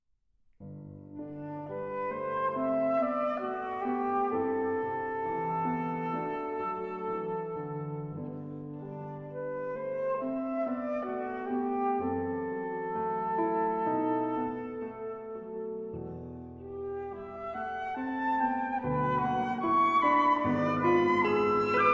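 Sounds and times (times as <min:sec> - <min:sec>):
flute and piano sonata andante: 0:00.6 - 0:21.9.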